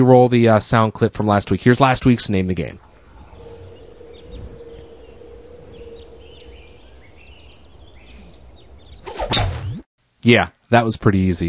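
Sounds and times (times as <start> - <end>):
speech: 0.0 - 2.9, 10.2 - 11.4
video game birds chirping: 1.7 - 9.2
low steady hum: 2.3 - 8.5.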